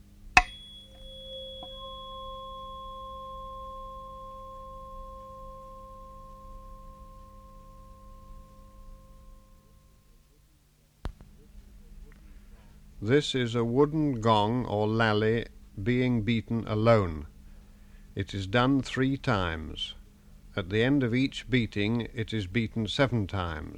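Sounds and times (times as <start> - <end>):
tuning fork ringing in C: 0.0 - 10.7
faint hum: 0.0 - 23.7
speech: 13.0 - 17.3, 18.2 - 20.0, 20.6 - 23.7.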